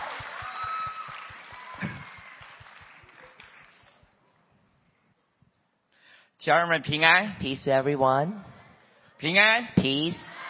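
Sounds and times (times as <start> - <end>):
audience applause: 0.0 - 4.0
speech: 6.4 - 8.5, 9.2 - 10.4.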